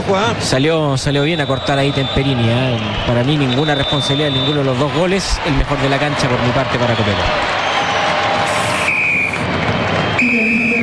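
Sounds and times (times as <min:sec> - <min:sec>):
speech: 0:00.1 - 0:07.7
referee's final whistle: 0:01.1 - 0:04.8, 0:08.5 - 0:10.8.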